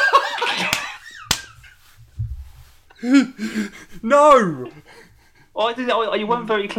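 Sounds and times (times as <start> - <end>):
laughter: 0.0 - 1.8
hand clap: 0.5 - 1.6
speech: 3.0 - 5.0, 5.6 - 6.7.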